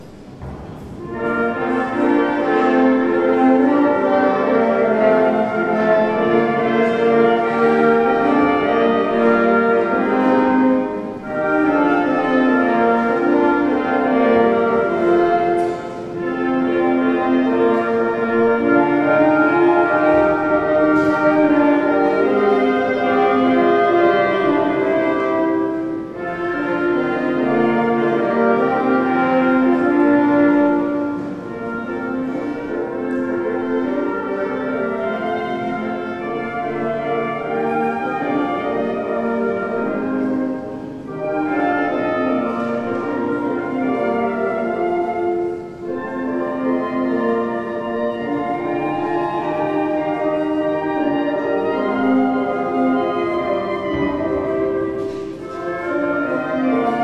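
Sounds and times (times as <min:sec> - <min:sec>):
wind quintet playing an entrée: 0:00.0 - 0:57.0.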